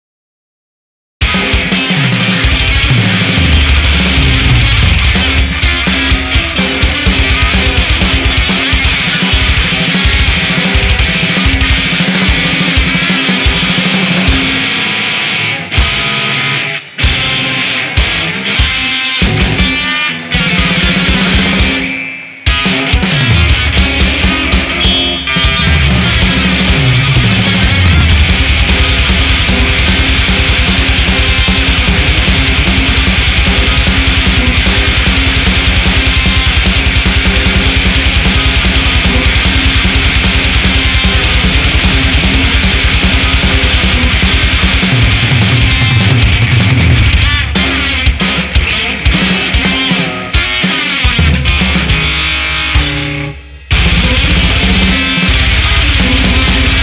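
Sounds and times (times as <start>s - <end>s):
drums: 1.2s - 56.8s
guitar: 1.2s - 56.8s.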